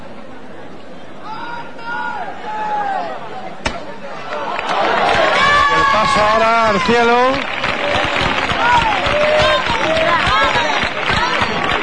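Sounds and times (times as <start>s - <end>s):
overlapping voices and scattered calls: 3.2s - 11.8s
crowd clapping: 4.2s - 11.8s
speech: 6.3s - 7.5s.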